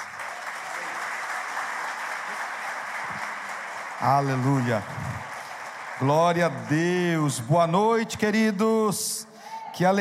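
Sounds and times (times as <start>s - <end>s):
audience applause: 0.0s - 7.5s
speech: 4.0s - 5.0s, 6.0s - 9.9s.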